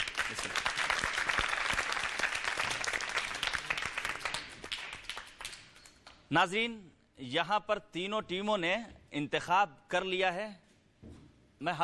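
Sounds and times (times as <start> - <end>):
audience applause: 0.0 - 5.6
speech: 0.3 - 0.8, 6.3 - 10.6, 11.6 - 11.8.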